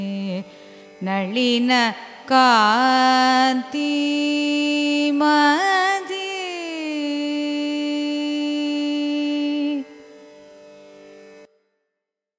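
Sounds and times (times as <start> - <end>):
carnatic raga music: 0.0 - 11.8.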